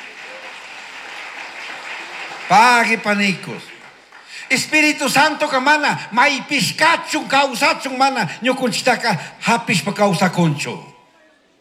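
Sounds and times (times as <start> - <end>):
applause: 0.0 - 5.5
speech: 2.5 - 3.7, 4.5 - 10.9.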